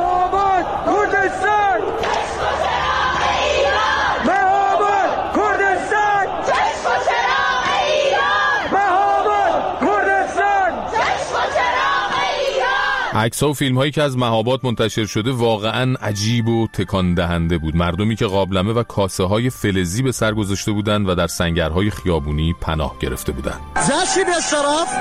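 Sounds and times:
crowd chanting protest slogans in Chitgar, Tehran: 0:00.0 - 0:13.2
speech: 0:13.2 - 0:24.9.

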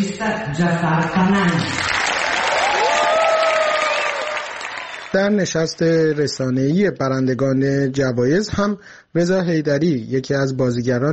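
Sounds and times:
speech: 0:00.2 - 0:02.0, 0:05.2 - 0:11.1
standing ovation applause in Venice Film Festival main hall: 0:01.6 - 0:06.5.

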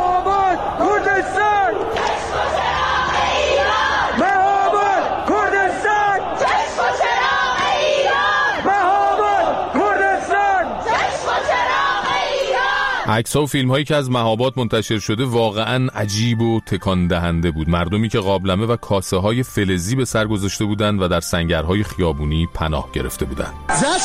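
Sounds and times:
crowd chanting protest slogans in Chitgar, Tehran: 0:00.0 - 0:13.1
speech: 0:13.1 - 0:24.0.

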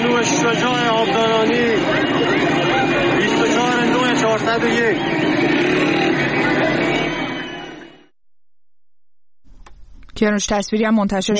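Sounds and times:
car engine: 0:00.0 - 0:08.1
crowd shouting at the entrance to Abadan: 0:00.0 - 0:08.1
speech: 0:04.4 - 0:06.8, 0:10.2 - 0:11.3.

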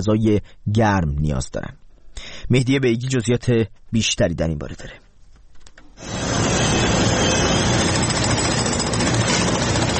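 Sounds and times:
speech: 0:00.0 - 0:05.0
rescue workers' machinery and tools: 0:05.9 - 0:09.9.

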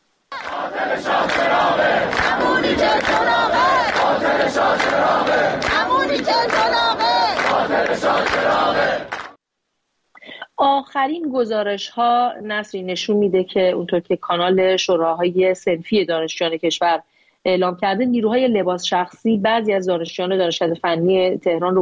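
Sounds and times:
engineering faculty students at Tehran University chanting protest slogans: 0:00.3 - 0:09.4
speech: 0:04.5 - 0:09.2, 0:10.6 - 0:21.8.

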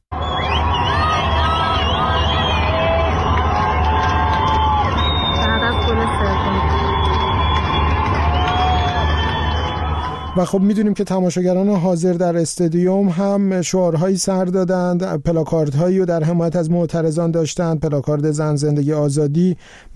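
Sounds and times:
crowd in Chitgar, Tehran cheering after England's third goal: 0:00.1 - 0:10.8
speech: 0:10.4 - 0:19.9.

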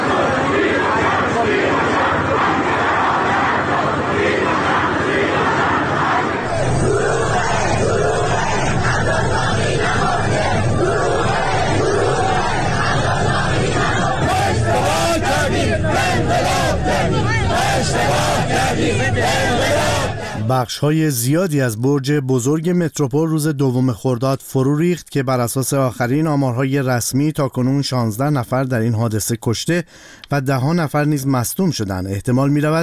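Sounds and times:
protest march crowd chanting: 0:00.0 - 0:20.5
speech: 0:20.6 - 0:32.8.

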